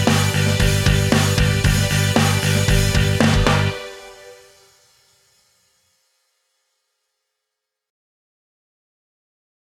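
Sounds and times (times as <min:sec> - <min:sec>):
karaoke singing: 0:00.0 - 0:04.2.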